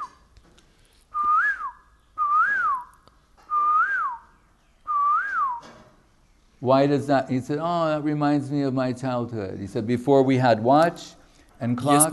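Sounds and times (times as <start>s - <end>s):
person whistling an imitation of a koel call: 1.1s - 2.9s, 3.5s - 4.3s, 4.9s - 5.7s
speech: 6.6s - 12.1s.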